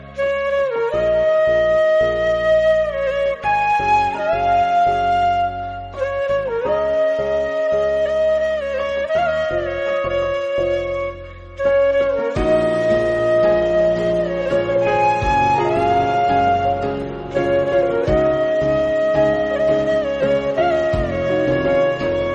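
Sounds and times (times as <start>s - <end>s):
lehra instrumental: 0.0s - 22.3s.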